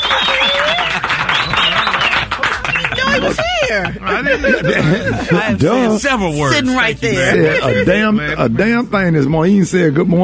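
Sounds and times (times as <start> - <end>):
round of applause on a morning show: 0.0 - 3.4
laughter: 0.2 - 5.9
people talking loudly: 2.8 - 10.1
speech: 3.2 - 10.2.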